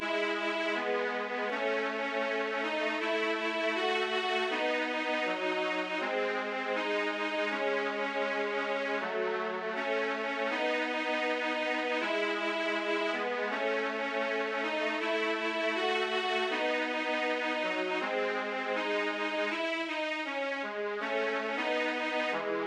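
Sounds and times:
strings: 0.0 - 22.6.

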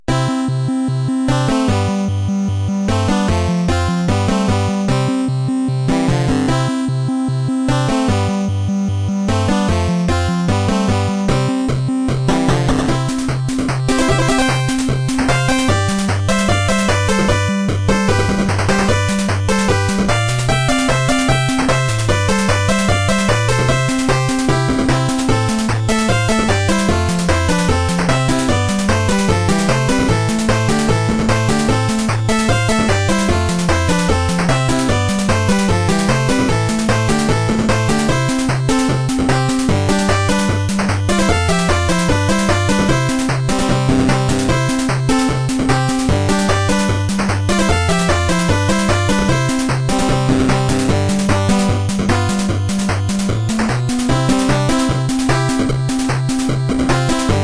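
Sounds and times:
end game music: 0.1 - 57.4.

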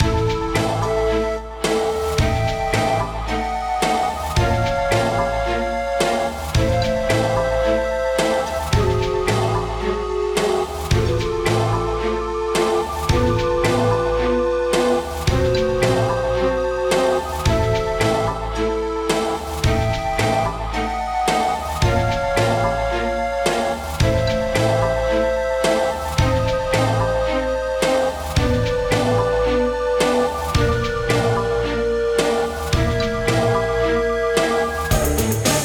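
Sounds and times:
dungeon background music: 0.0 - 35.6.

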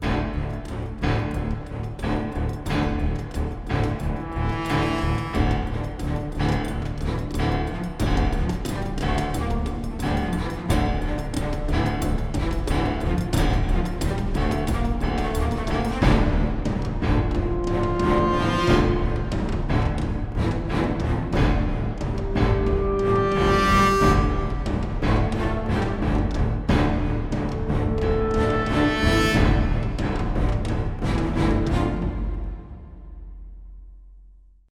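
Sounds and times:
motivational music: 0.0 - 33.5.

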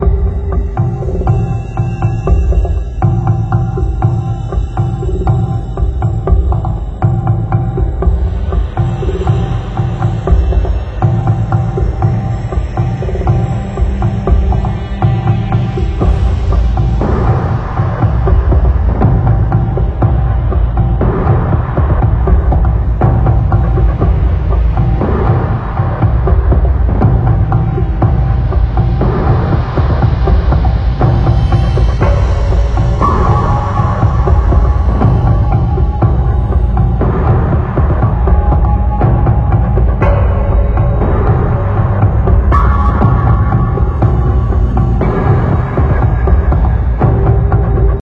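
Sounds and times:
tense music: 0.0 - 47.9.

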